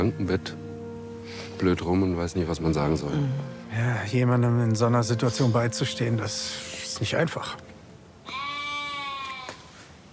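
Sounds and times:
speech: 0:00.0 - 0:00.6, 0:01.3 - 0:07.6
sheep bleating: 0:08.2 - 0:09.7.

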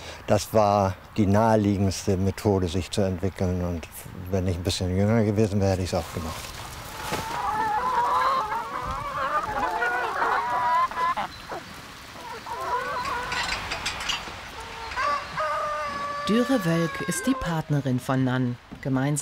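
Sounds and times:
speech: 0:00.3 - 0:06.5, 0:16.3 - 0:19.1
flock of chickens clucking and squawking on a farm: 0:05.7 - 0:18.4.

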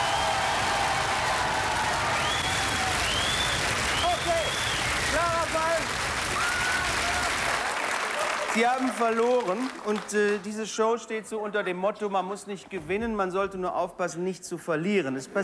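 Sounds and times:
audience applause: 0:00.0 - 0:10.6
speech: 0:08.6 - 0:15.4.

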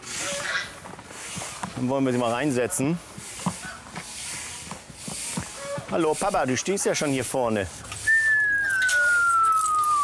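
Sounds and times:
speech: 0:01.8 - 0:03.1, 0:06.0 - 0:07.9
whistle tone gliding down: 0:08.0 - 0:10.0.

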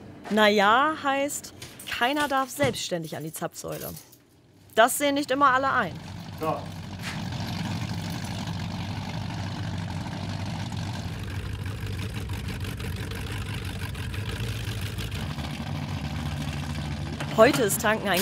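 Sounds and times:
speech: 0:00.3 - 0:04.1, 0:04.8 - 0:06.8, 0:17.4 - 0:18.1
loud powerboat engines at the Stettiner Haff: 0:05.3 - 0:18.1.

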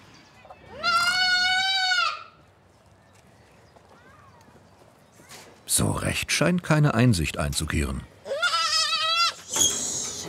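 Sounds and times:
young goat kid bleating: 0:00.7 - 0:02.3, 0:08.2 - 0:10.2
speech: 0:05.8 - 0:08.2.

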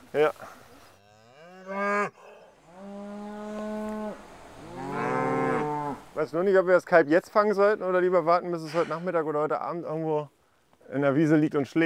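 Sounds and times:
speech: 0:00.1 - 0:00.6, 0:06.2 - 0:11.8
mother cow mooing near her calf on a farm pasture: 0:01.0 - 0:06.1.

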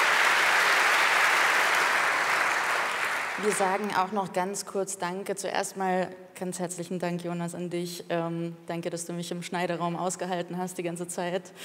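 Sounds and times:
audience applause: 0:00.0 - 0:04.0
speech: 0:03.4 - 0:11.6.

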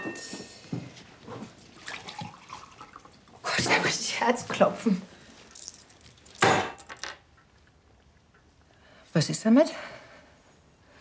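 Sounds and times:
water pouring into a glass: 0:01.8 - 0:03.2
speech: 0:03.6 - 0:05.1, 0:09.2 - 0:10.0.

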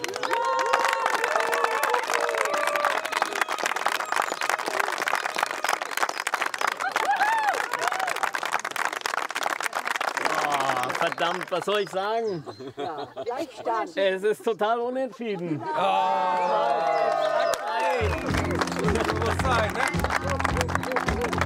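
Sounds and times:
scattered cheers and whooping voices: 0:00.0 - 0:08.4, 0:15.7 - 0:20.0
crowd applauding: 0:00.0 - 0:12.2, 0:15.8 - 0:21.4
speech: 0:11.1 - 0:21.0
laughter: 0:12.2 - 0:21.4.

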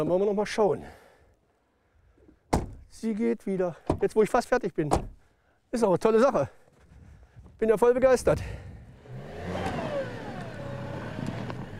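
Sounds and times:
speech: 0:00.0 - 0:01.0, 0:03.0 - 0:05.1, 0:05.7 - 0:06.6, 0:07.6 - 0:08.6
stuck truck engine revving: 0:08.9 - 0:11.7.

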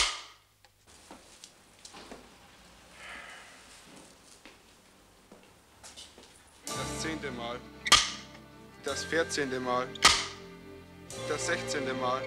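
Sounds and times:
speech: 0:07.1 - 0:07.8, 0:08.8 - 0:10.2, 0:11.1 - 0:12.2
film clapperboard snapping shut: 0:07.9 - 0:08.3, 0:10.0 - 0:10.4
sharp wooden clicks: 0:07.9 - 0:08.3, 0:10.0 - 0:10.4.

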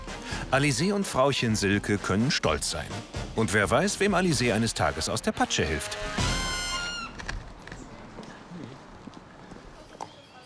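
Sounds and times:
speech: 0:00.5 - 0:06.4
Altoldenburger horse walking, hooves clip-clopping: 0:06.6 - 0:10.4.

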